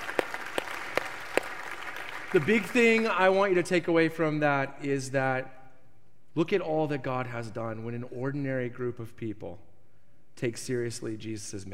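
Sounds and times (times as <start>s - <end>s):
audience applauding: 0.0s - 3.2s
speech: 2.3s - 5.6s, 6.4s - 9.7s, 10.4s - 11.7s.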